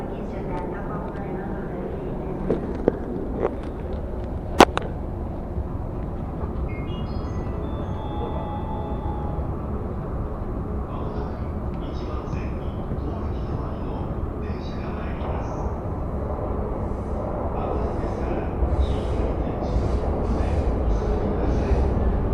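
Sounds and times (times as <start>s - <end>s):
voices: 0.0s - 4.0s, 9.8s - 22.3s
Tokyo commuter train carriage rumble on Yamanote and Keihin-Tohoku lines: 0.0s - 22.3s
chirps of announcements or brakes: 6.7s - 9.0s.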